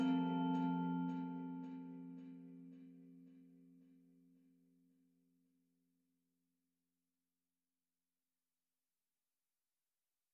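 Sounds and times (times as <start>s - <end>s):
twinkly bells playing a christmas carol: 0.0s - 2.1s.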